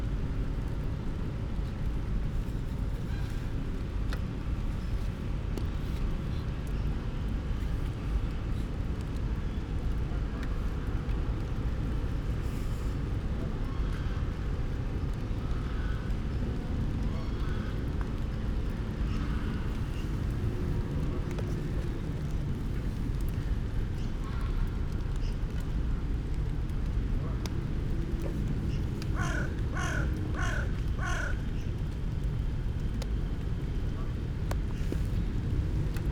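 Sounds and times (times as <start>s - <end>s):
rain: 0.0s - 36.1s
crow calls: 28.7s - 31.7s.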